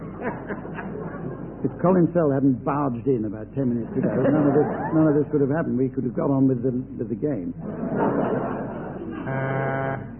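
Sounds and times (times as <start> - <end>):
laughter: 0.0 - 1.7, 3.7 - 5.6, 7.6 - 10.1
speech: 0.2 - 8.6, 9.3 - 10.1
buzzer sounding like a thick horn: 9.3 - 10.1.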